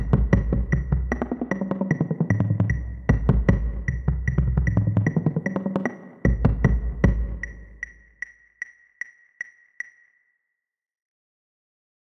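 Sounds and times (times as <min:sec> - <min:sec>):
bass: 0:00.0 - 0:01.6, 0:02.3 - 0:05.4, 0:06.3 - 0:08.0.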